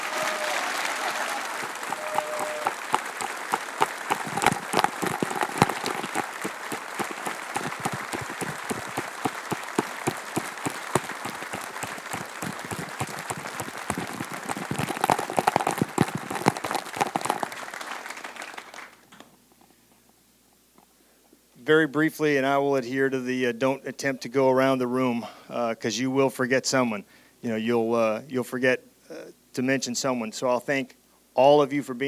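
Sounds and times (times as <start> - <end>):
audience applause: 0.0 - 19.0
speech: 21.7 - 28.9, 29.6 - 32.0.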